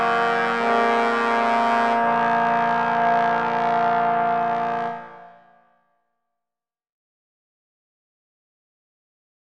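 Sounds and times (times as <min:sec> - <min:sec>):
trombone choir playing an opening: 0:00.0 - 0:05.3.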